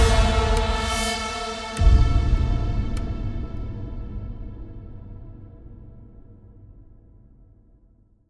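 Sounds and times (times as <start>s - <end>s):
theme music: 0.0s - 5.6s.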